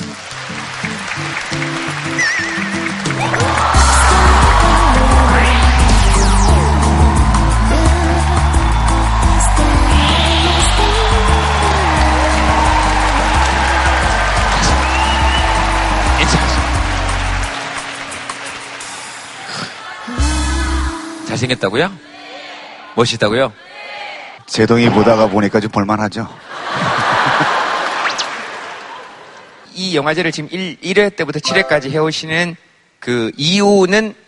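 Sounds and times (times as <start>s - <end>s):
audience applauding: 0.0s - 20.1s
loud bass-heavy music with a stepping beat: 3.1s - 17.5s
speech: 21.5s - 22.1s, 23.0s - 23.6s, 24.5s - 26.5s, 29.8s - 34.2s
laughter: 26.4s - 29.5s.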